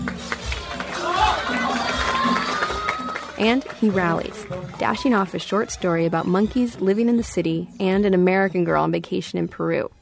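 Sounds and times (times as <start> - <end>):
crowd cheering on a contestant: 0.0 - 7.1
speech: 3.4 - 10.0.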